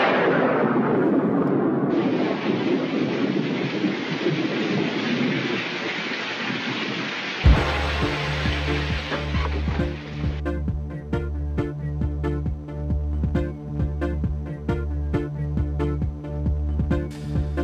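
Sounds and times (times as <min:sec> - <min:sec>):
deep rolling thunder: 0:00.0 - 0:10.4
heavy steady rain: 0:01.7 - 0:10.4
sudden thump: 0:07.5 - 0:10.0
low tone: 0:07.5 - 0:17.6.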